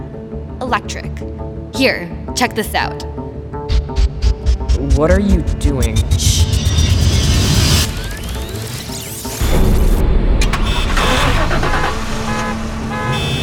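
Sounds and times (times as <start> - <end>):
speech: 0.6 - 3.2, 4.8 - 6.6
many car engines starting in a parking garage: 4.8 - 13.4.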